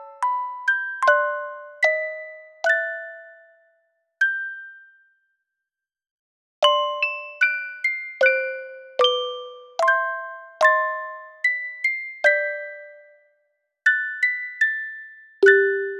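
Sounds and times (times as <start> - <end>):
music box chorale: 0.0 - 3.6, 6.6 - 13.3, 13.9 - 15.9.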